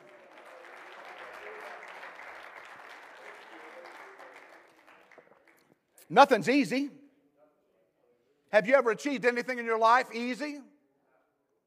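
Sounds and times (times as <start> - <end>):
audience clapping hands: 0.0 - 5.9
speech: 6.1 - 7.0, 8.5 - 10.7.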